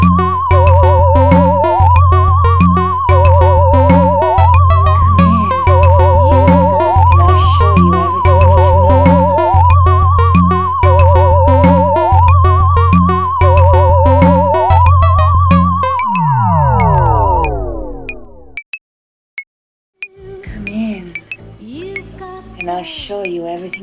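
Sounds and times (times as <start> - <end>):
octave bump: 0.0 - 18.6.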